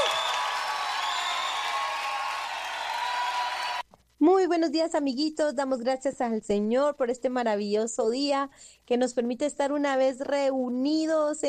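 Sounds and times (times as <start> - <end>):
audience applause: 0.0 - 3.8
speech: 4.4 - 11.4.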